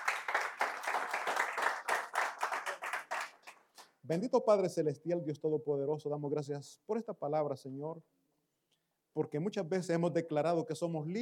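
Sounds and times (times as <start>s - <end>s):
crowd applauding: 0.0s - 3.8s
speech: 4.1s - 8.2s, 9.2s - 11.1s.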